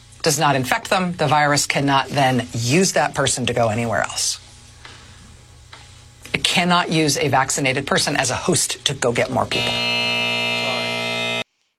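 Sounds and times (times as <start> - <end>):
speech: 0.2 - 4.4, 6.6 - 10.2
harsh electronic buzzer sound effect: 9.5 - 11.5.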